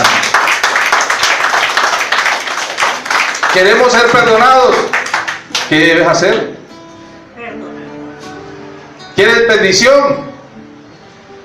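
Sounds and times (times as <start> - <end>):
audience applause: 0.0 - 5.7
speech: 3.6 - 5.0, 5.7 - 6.5, 9.2 - 10.3.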